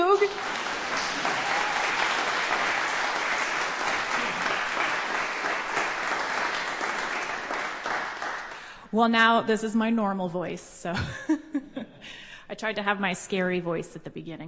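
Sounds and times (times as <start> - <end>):
audience applause: 0.0 - 8.7
speech: 9.0 - 11.7, 12.5 - 14.4.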